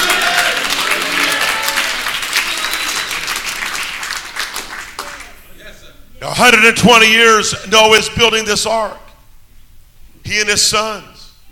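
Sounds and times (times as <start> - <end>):
church congregation applauding during a service: 0.0 - 5.4
speech: 6.3 - 9.0, 10.3 - 11.1.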